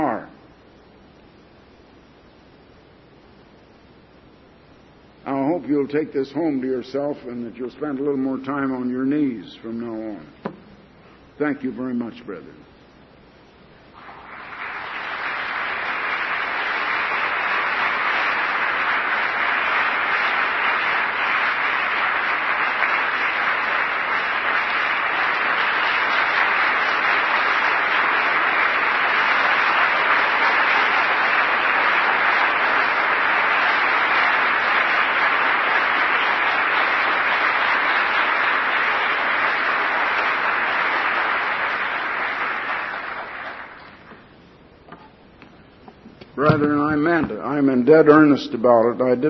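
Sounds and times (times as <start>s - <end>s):
speech: 5.6s - 10.6s, 11.4s - 12.7s, 46.6s - 49.2s
crowd applause: 14.0s - 44.2s.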